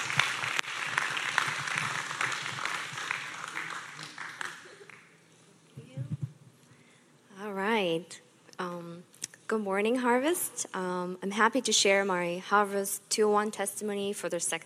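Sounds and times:
audience clapping: 0.0s - 5.2s
speech: 7.8s - 8.2s, 9.5s - 14.6s.

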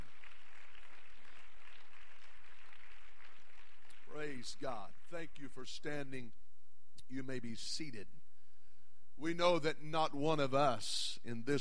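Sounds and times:
audience clapping hands: 0.0s - 5.6s
speech: 4.4s - 6.4s, 7.1s - 8.2s, 9.2s - 11.6s.

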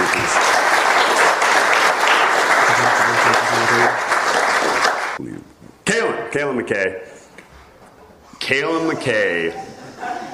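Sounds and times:
audience applause: 0.0s - 5.2s
laughter: 2.6s - 4.0s, 9.3s - 10.3s
speech: 6.4s - 7.1s, 8.5s - 9.7s.

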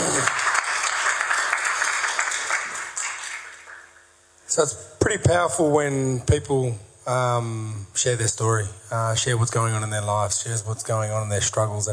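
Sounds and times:
audience applauding a speaker: 0.0s - 4.0s
speech: 4.6s - 11.9s.

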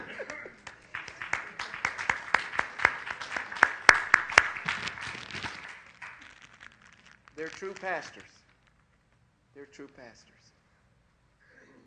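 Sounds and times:
audience clapping: 0.0s - 8.2s
speech: 7.6s - 8.4s, 9.6s - 10.4s.

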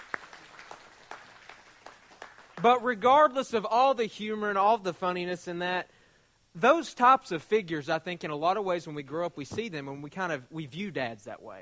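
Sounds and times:
light scattered audience applause: 0.0s - 2.8s
speech: 2.6s - 5.9s, 6.6s - 11.6s.

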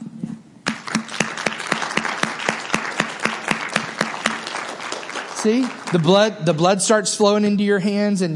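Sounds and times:
audience clapping hands together: 0.6s - 6.7s
speech: 5.4s - 8.3s.

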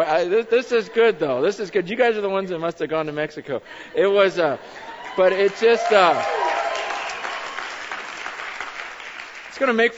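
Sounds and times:
speech: 0.0s - 6.5s, 9.6s - 9.9s
congregation clapping during a church service: 5.0s - 9.9s.

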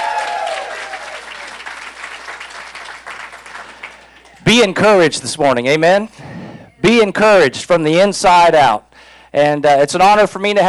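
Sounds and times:
audience applause: 0.0s - 4.5s
speech: 4.6s - 6.2s, 6.9s - 10.6s.

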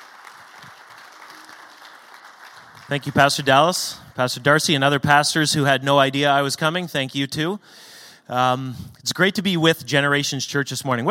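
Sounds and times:
church congregation applause at a morning service: 0.0s - 4.7s
speech: 2.9s - 11.0s.

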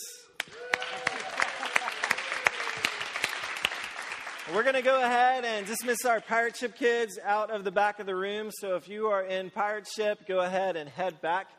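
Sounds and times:
audience cheering and applauding: 0.4s - 6.4s
speech: 4.5s - 11.5s.

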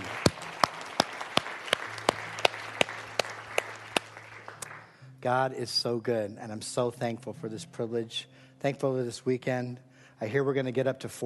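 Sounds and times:
audience applause with rhythmic sharp claps: 0.0s - 5.0s
crowd noise: 0.0s - 5.0s
speech: 5.2s - 11.2s.

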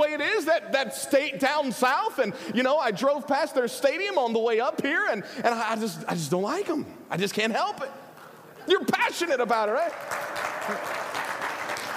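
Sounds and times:
speech: 0.2s - 8.0s, 8.7s - 11.0s
audience applause: 9.7s - 11.9s.

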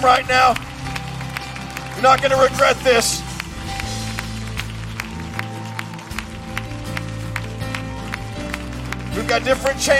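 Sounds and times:
speech: 0.0s - 0.7s, 2.0s - 3.2s, 9.2s - 9.9s
audience clapping hands: 0.0s - 9.9s.

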